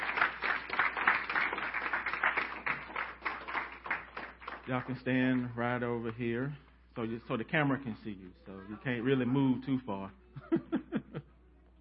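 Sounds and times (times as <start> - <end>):
audience clapping: 0.0 - 6.1
speech: 4.7 - 10.7
laughter: 8.8 - 11.4.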